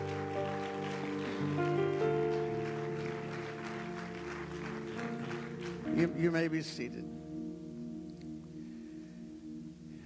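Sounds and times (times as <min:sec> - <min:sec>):
audience clapping hands in praise: 0:00.0 - 0:06.6
speech: 0:06.0 - 0:07.2.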